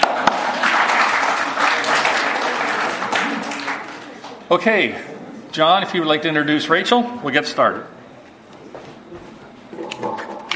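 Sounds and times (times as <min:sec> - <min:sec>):
audience applause: 0:00.0 - 0:04.4
speech: 0:04.5 - 0:08.0.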